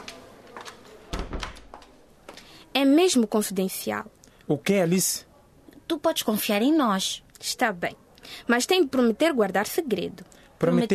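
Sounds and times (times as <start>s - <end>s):
door closing with a soft low thud: 1.1s - 1.8s
speech: 2.8s - 5.3s, 5.9s - 10.9s.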